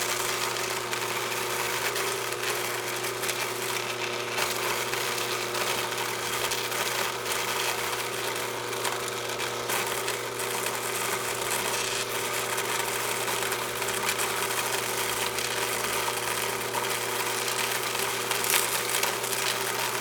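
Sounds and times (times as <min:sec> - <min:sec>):
cacao grinder running in a chocolate factory workshop: 0:00.0 - 0:19.9.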